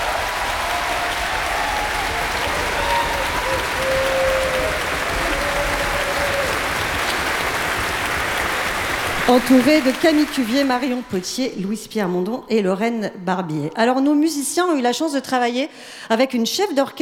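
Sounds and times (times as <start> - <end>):
audience applause: 0.0 - 11.3
speech: 9.3 - 16.9.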